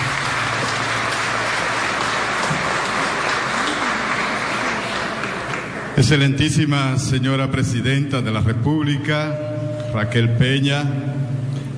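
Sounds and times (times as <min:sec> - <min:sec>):
applause: 0:00.0 - 0:06.2
speech: 0:06.0 - 0:09.4, 0:10.0 - 0:11.2.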